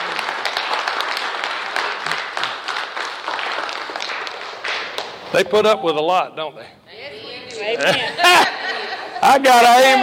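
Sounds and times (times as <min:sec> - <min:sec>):
crowd applauding: 0:00.0 - 0:05.3
speech: 0:05.4 - 0:06.8, 0:07.6 - 0:08.6, 0:09.3 - 0:10.0
laughter: 0:07.7 - 0:09.5.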